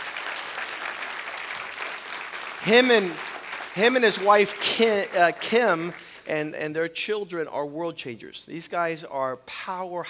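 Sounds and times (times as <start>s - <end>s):
church congregation applauding to welcome a pastor: 0.0s - 6.8s
speech: 2.6s - 10.0s.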